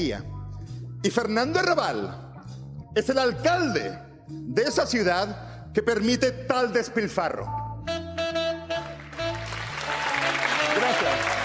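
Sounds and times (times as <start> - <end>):
speech: 0.0 - 0.4, 1.0 - 2.3, 2.9 - 7.6
audience applause: 9.0 - 11.4.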